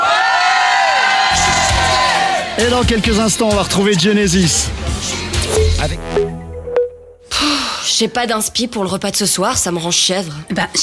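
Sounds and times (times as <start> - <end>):
crowd cheering and whooping on a boat: 0.0 - 2.6
speech: 2.6 - 5.2, 5.8 - 6.4, 8.0 - 10.8.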